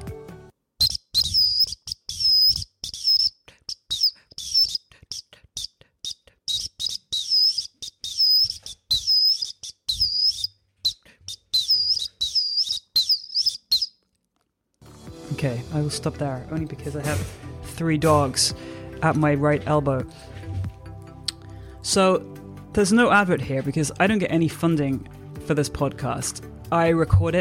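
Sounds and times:
tune played on an Acme 212 whistle: 0.8s - 4.8s, 6.0s - 13.9s
brief breaths: 3.4s - 6.5s, 10.9s - 12.2s, 18.6s - 19.0s, 20.1s - 21.8s
speech: 15.9s - 20.3s, 21.9s - 27.3s.

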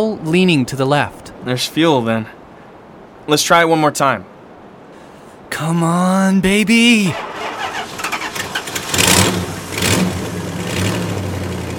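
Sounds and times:
speech: 0.0s - 2.4s, 3.2s - 4.3s, 5.6s - 7.3s
car engine cranking and revving after refuelling: 7.2s - 11.7s.

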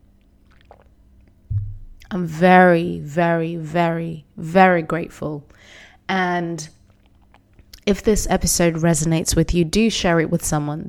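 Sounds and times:
person sipping persimmon leaf tea: 0.4s - 2.1s
speech: 2.1s - 6.8s, 7.9s - 10.8s.

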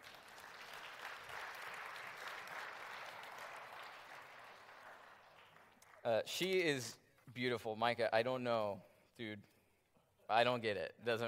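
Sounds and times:
crowd applauding: 0.0s - 6.2s
speech: 6.0s - 9.5s, 10.3s - 11.2s.

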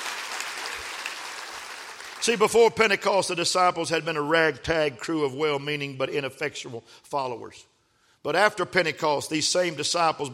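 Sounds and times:
crowd clapping hands: 0.0s - 2.6s
speech: 2.2s - 10.3s.

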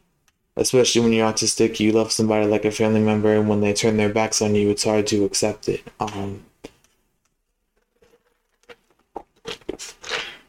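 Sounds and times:
speech: 0.6s - 6.5s
sipping a drink: 8.0s - 10.4s.

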